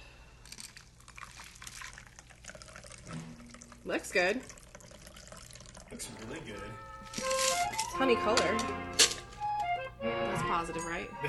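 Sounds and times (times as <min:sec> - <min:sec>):
cocktail being strained into a glass: 0:00.4 - 0:07.5
speech: 0:03.8 - 0:04.6, 0:05.9 - 0:09.1, 0:10.0 - 0:11.2.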